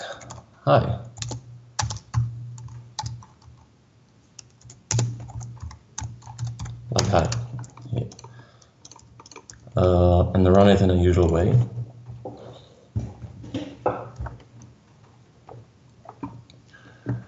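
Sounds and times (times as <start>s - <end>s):
computer keyboard typing: 0.0s - 0.5s, 1.1s - 3.7s, 4.4s - 10.0s, 10.6s - 11.6s
speech: 0.7s - 1.1s, 7.1s - 7.4s, 9.8s - 11.8s.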